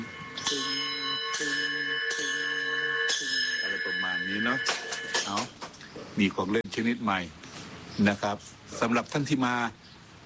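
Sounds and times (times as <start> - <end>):
hand bell ringing: 0.0 - 5.5
speech: 4.4 - 5.4, 6.2 - 7.4, 8.0 - 9.8.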